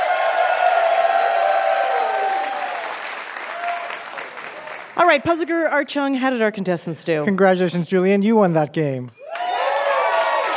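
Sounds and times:
audience clapping for the students of the Brooklyn Guitar School: 0.0s - 5.3s, 9.2s - 10.5s
speech: 5.0s - 9.2s.

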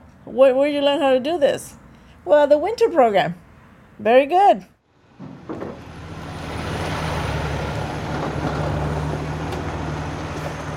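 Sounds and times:
freeway traffic roar beside a construction site: 0.0s - 4.2s, 4.8s - 10.7s
speech: 0.2s - 3.4s, 4.0s - 4.7s
heavy construction engines droning: 4.9s - 10.7s.

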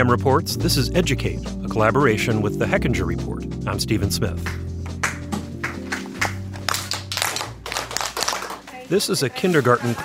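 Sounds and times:
speech: 0.0s - 4.6s, 8.9s - 10.0s
teacher clapping for kids' attention: 4.4s - 8.9s.

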